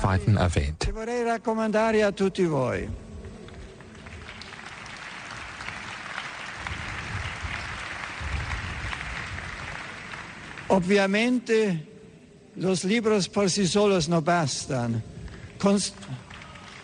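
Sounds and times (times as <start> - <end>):
speech: 0.0 - 3.0, 10.7 - 11.9, 12.6 - 16.3
audience applause: 3.4 - 10.9, 16.0 - 16.8.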